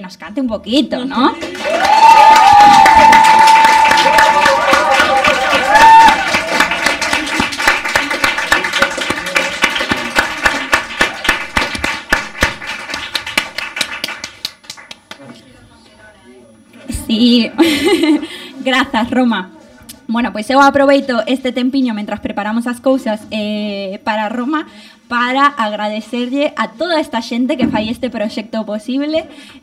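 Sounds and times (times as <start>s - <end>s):
speech: 0.0s - 3.6s, 17.2s - 19.5s, 20.1s - 29.6s
audience applause: 1.4s - 15.3s
laughter: 17.6s - 18.6s.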